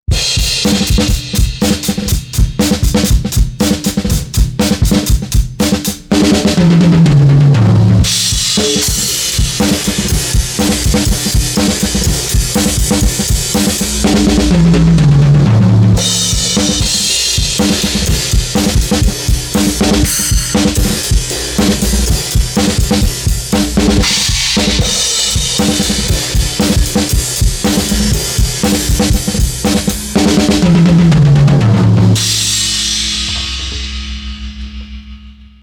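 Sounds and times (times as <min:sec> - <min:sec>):
glued drums: 0:00.0 - 0:35.6.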